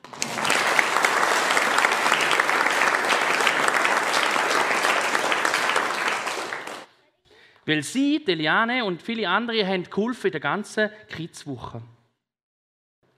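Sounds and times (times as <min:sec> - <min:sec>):
audience applause: 0:00.0 - 0:06.9
speech: 0:07.7 - 0:12.0.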